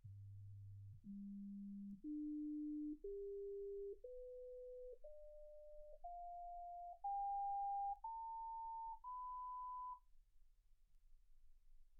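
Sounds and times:
sine tones: 0.9 - 10.1.

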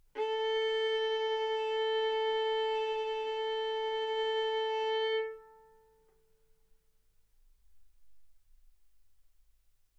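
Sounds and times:
violin bowed mezzo-forte on the A string, A4 and B4: 0.1 - 6.0.

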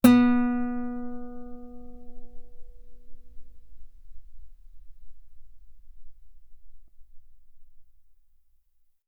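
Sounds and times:
loud guitar note on the B string: 0.0 - 4.8.

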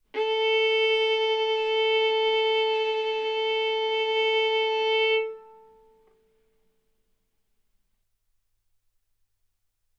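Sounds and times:
violin bowed arco notes: 0.1 - 6.2.

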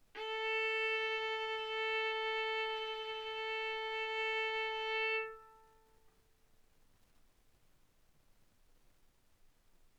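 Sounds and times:
violin bowed mezzo-forte on the A string, A4 and B4: 0.2 - 6.0.

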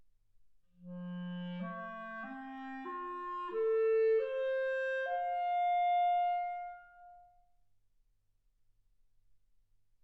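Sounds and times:
clarinet: 0.8 - 7.4.

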